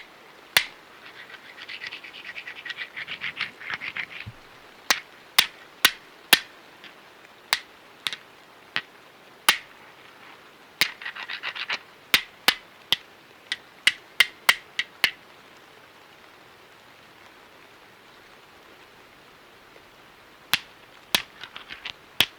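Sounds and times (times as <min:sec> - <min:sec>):
flints of various sizes striking to start a fire in a cave: 0:00.0 - 0:08.2, 0:09.5 - 0:09.8, 0:10.8 - 0:15.2, 0:20.5 - 0:22.3.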